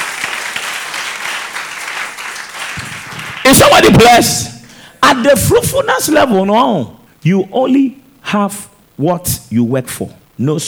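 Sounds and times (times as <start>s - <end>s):
crowd clapping: 0.0s - 4.4s
speech: 3.5s - 4.5s, 5.1s - 10.6s.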